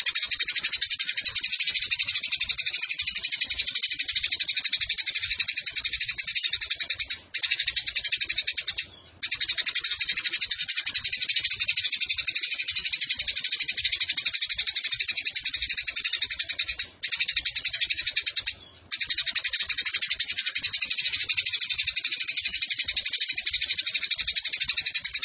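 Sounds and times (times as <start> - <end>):
Eurasian tree sparrow chirping: 0.0 - 25.2.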